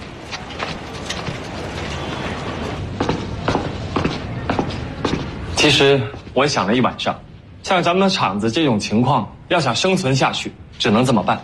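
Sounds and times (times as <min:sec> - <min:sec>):
footsteps of someone walking away: 0:00.0 - 0:06.4
noise: 0:00.0 - 0:11.4
speech: 0:05.6 - 0:11.4.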